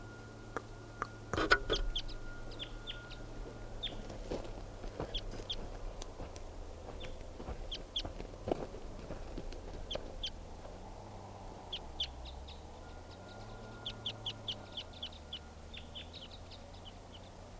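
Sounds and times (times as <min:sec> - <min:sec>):
deep-voiced wild bird hooting in the early morning: 0:00.0 - 0:06.0, 0:11.5 - 0:17.5
other birds chirping and clucking: 0:00.0 - 0:17.5.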